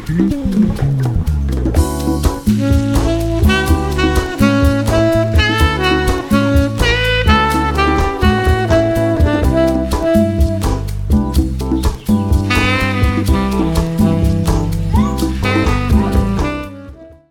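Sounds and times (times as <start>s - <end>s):
DJ mix: 0.0s - 17.2s
saxophone: 2.4s - 11.2s, 12.4s - 17.2s.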